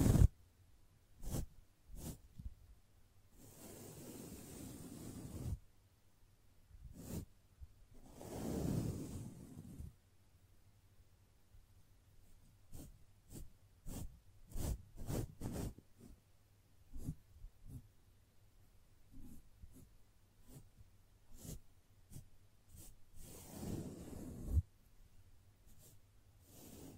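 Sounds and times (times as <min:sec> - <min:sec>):
soft brushing strokes: 0:00.0 - 0:00.3, 0:01.2 - 0:02.6, 0:03.3 - 0:05.6, 0:06.8 - 0:07.4, 0:08.0 - 0:10.0, 0:12.2 - 0:16.3, 0:16.9 - 0:18.0, 0:19.1 - 0:24.7, 0:25.6 - 0:26.9.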